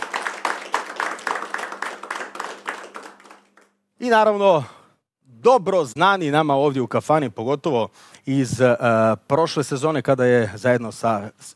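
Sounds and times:
audience applause welcoming a singer and her band in a kafana: 0.0s - 3.7s
speech: 4.0s - 4.8s, 5.4s - 11.5s.

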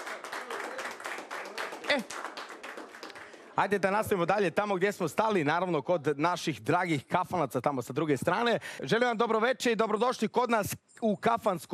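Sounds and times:
audience applause for the waiters at a kafana evening: 0.0s - 4.0s
speech: 1.9s - 2.3s, 3.6s - 11.7s.

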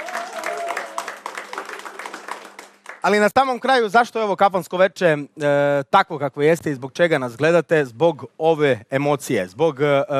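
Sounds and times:
audience applause at a live tavern-style music evening: 0.0s - 3.3s
speech: 3.0s - 10.1s.

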